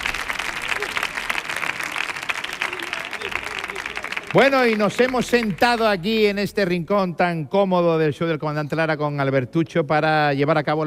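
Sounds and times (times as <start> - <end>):
audience applause: 0.0 - 6.2
speech: 4.4 - 10.8.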